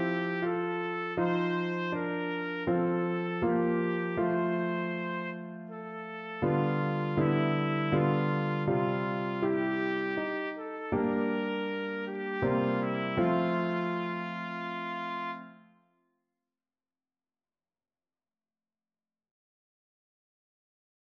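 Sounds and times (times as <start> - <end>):
trumpet playing a nocturne: 0.0 - 15.7.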